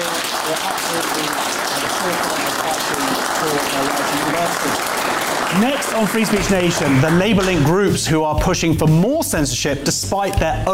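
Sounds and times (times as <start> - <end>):
audience applause: 0.0 - 7.9
speech: 3.7 - 10.7.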